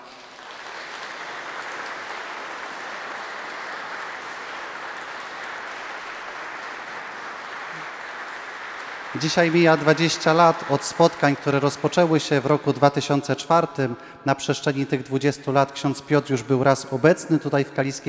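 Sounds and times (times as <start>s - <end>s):
applause: 0.0s - 13.8s
speech: 9.1s - 18.0s.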